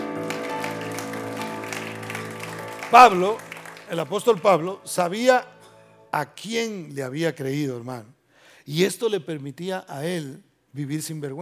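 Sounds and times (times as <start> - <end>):
audience applauding: 0.0 - 5.0
sustained instrumental music tones: 0.0 - 6.2
speech: 2.9 - 5.5, 6.1 - 11.4.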